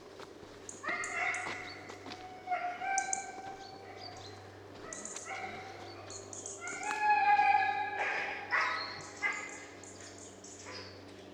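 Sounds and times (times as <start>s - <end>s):
domestic dog Canis familiaris: 0.8s - 1.7s, 2.5s - 9.6s.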